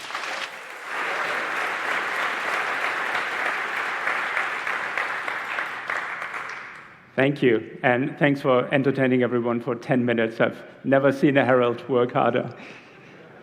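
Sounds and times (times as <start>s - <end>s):
audience applause: 0.0s - 7.0s
speech: 7.2s - 12.8s.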